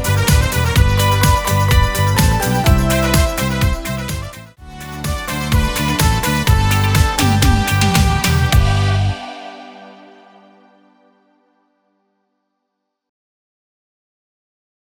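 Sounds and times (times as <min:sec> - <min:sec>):
karaoke singing: 0:00.0 - 0:10.8.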